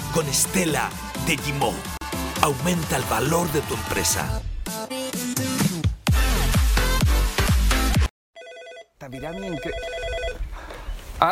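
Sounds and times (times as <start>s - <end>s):
loud music: 0.0s - 8.1s
speech: 0.1s - 4.5s, 9.1s - 10.0s
telephone ringing in an office: 8.4s - 10.4s.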